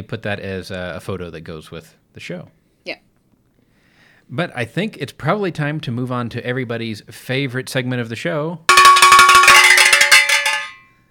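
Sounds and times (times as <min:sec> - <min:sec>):
speech: 0:00.0 - 0:03.0, 0:04.3 - 0:08.8
stereo cowbell sound effect: 0:08.7 - 0:10.9.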